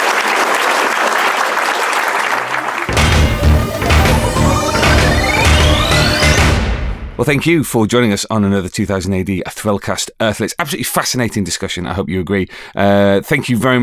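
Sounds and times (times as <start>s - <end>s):
crowd applauding: 0.0s - 6.8s
bright music with rising swoosh and low thumping beat: 2.9s - 7.4s
speech: 7.2s - 13.8s.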